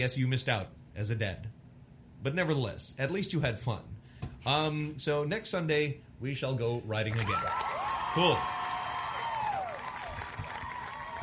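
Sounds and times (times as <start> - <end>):
speech: 0.0 - 1.6, 2.2 - 8.6
studio audience applauding: 7.1 - 11.2
studio audience cheering: 7.1 - 11.2
falling whoop: 7.4 - 11.2.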